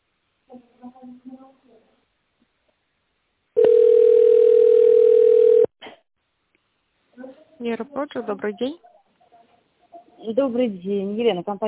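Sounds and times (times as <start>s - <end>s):
telephone ringing tone while on hold: 3.6s - 5.7s
speech: 7.8s - 8.9s, 10.2s - 11.6s.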